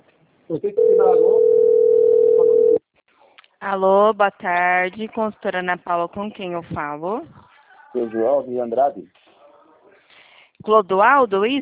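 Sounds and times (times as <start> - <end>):
speech: 0.5 - 2.6, 3.6 - 9.2, 10.6 - 11.6
telephone dial tone while placing a call: 0.8 - 2.8.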